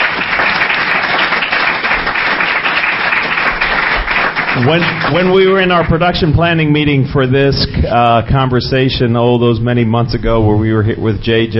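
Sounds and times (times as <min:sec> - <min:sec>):
audience applause for a panel: 0:00.0 - 0:06.2
speech: 0:04.6 - 0:11.5.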